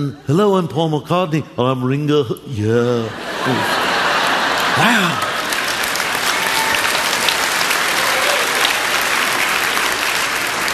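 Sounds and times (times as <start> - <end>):
speech: 0.0 - 3.9, 4.8 - 5.3
laughter: 2.6 - 6.6
audience clapping: 3.5 - 10.7.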